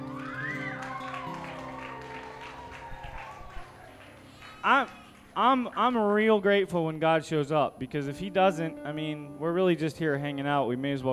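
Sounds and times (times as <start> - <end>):
audience yelling: 0.0 - 5.7
audience clapping: 0.0 - 6.6
speech: 4.6 - 11.1.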